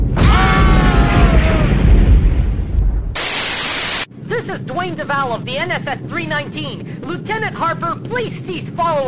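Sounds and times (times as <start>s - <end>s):
concussion rockets exploding: 0.2s - 4.1s
speech: 4.9s - 9.0s.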